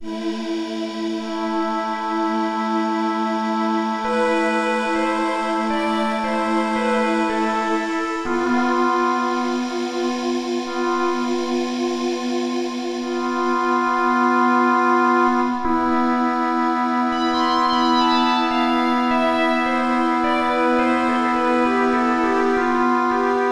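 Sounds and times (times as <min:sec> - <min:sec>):
synth pad: 0:00.2 - 0:23.4.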